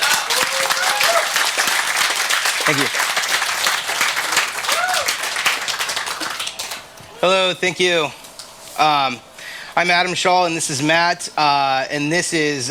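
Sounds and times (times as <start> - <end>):
audience applause: 0.0 - 7.0
speech: 2.7 - 3.0, 7.2 - 8.2, 8.8 - 12.6.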